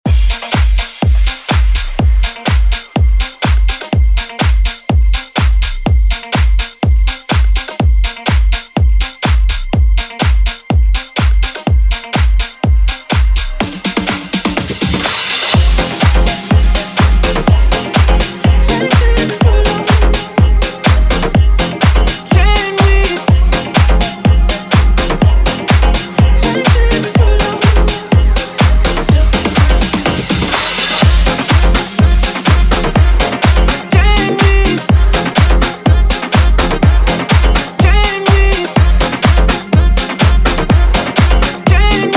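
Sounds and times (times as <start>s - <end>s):
future house music edit: 0.0s - 42.1s.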